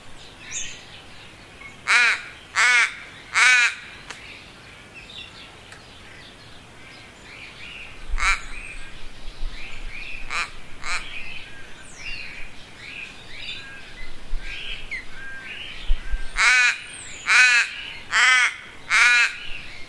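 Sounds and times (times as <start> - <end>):
crow cawing: 1.9 - 3.9, 8.2 - 8.5, 10.3 - 11.1, 16.4 - 19.5.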